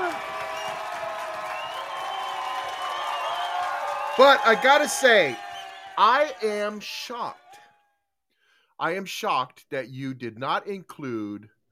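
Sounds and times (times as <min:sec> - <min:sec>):
large crowd cheering and applauding: 0:00.0 - 0:07.8
many overlapping voices shouting and whooping: 0:00.0 - 0:07.8
speech: 0:04.2 - 0:05.4, 0:06.0 - 0:07.4, 0:08.8 - 0:11.6.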